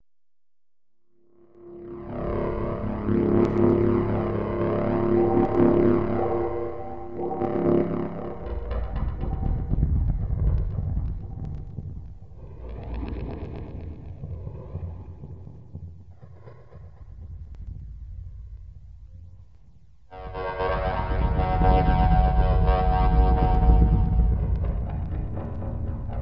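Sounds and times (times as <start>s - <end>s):
music in F Dorian at 60 BPM: 1.2s - 12.3s, 20.1s - 26.2s.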